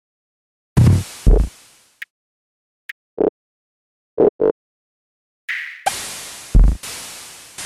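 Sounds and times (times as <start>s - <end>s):
gritty drum kit: 0.8s - 1.6s, 6.5s - 6.8s.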